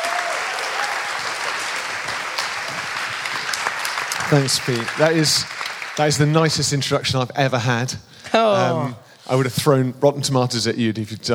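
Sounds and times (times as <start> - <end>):
audience applause: 0.0 - 6.9
speech: 4.3 - 11.3.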